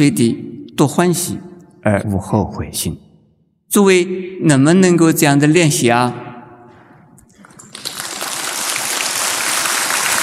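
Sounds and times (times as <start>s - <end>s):
speech: 0.0s - 3.0s, 3.7s - 6.3s
crowd applause: 7.3s - 10.2s.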